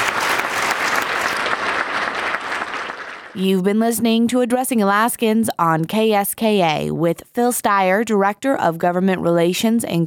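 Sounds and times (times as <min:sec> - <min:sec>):
audience applause for panelists: 0:00.0 - 0:03.4
speech: 0:03.4 - 0:10.0.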